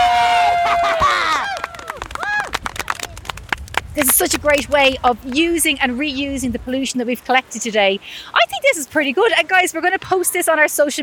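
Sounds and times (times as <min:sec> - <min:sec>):
group applause and cheering: 0:00.0 - 0:04.8
speech: 0:04.0 - 0:11.0.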